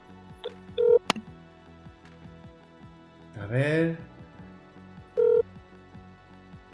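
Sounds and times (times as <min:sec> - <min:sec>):
phone call ringing: 0:00.8 - 0:01.1, 0:05.2 - 0:05.4
speech: 0:03.5 - 0:04.1.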